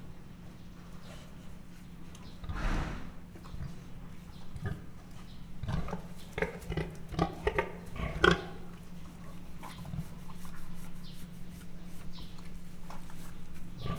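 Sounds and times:
captive standard Mangalica pig grunting and snorting in a zoo at Miskolc: 2.4s - 8.9s, 13.6s - 13.9s.

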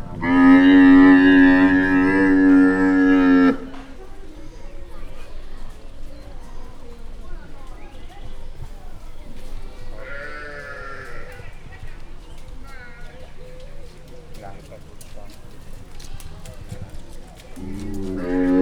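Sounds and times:
female Bactrian camel being led out at Győr Zoo: 0.0s - 4.1s, 8.3s - 18.6s.

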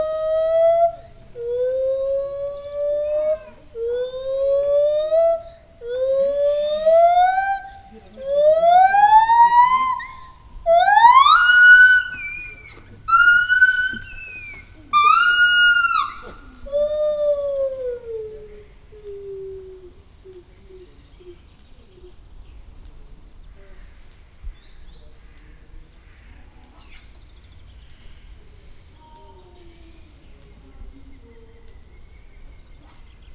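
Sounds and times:
captive white-handed gibbon singing solo song: 0.0s - 19.8s.

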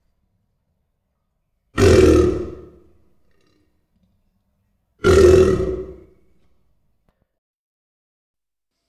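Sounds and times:
spectacled caiman at a zoo: 1.8s - 2.9s, 5.0s - 6.2s.

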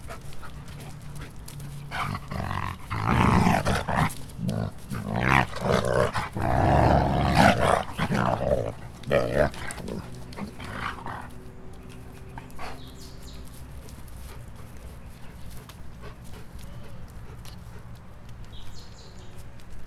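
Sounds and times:
grey wolves fighting: 0.0s - 18.8s.

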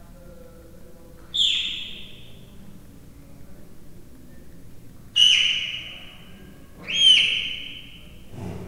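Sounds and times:
three-month-old captive leopard cub chirping in a zoo: 1.2s - 2.6s, 5.2s - 8.5s.

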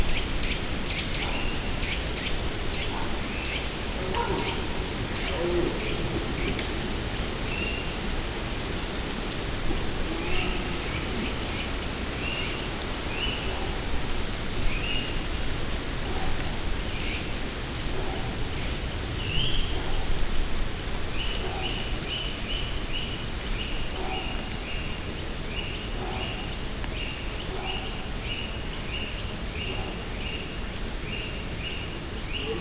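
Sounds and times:
birds: 0.0s - 32.5s
red deer stags bellowing in a deep valley: 2.8s - 8.1s, 9.1s - 11.9s
branches rustling: 3.2s - 12.3s.

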